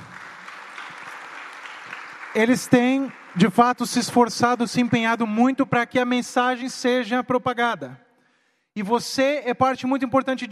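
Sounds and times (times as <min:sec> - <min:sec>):
audience applause: 0:00.0 - 0:05.2
speech: 0:02.4 - 0:08.0, 0:08.8 - 0:10.5.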